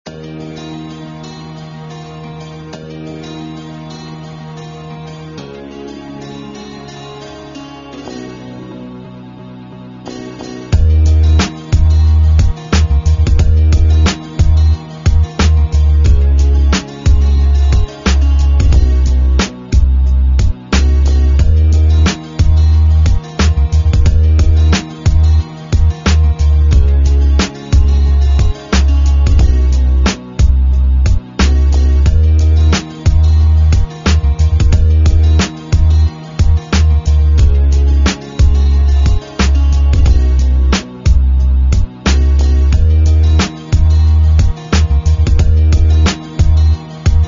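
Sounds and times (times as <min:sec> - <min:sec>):
beat: 0:10.7 - 0:47.2.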